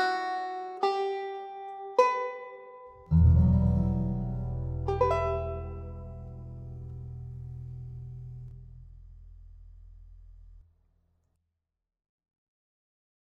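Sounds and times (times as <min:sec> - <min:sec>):
banjo: 0:00.0 - 0:08.5.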